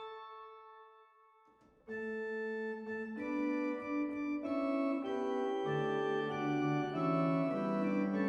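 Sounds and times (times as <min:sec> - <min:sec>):
Borstwerk Superoctaav 2 pipe organ stop: 0:01.9 - 0:08.2.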